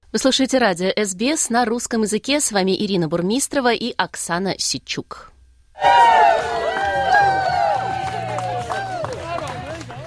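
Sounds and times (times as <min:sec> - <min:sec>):
speech: 0:00.1 - 0:06.7
joyful applause at a wedding: 0:05.8 - 0:10.0
music at a wedding: 0:06.4 - 0:10.0.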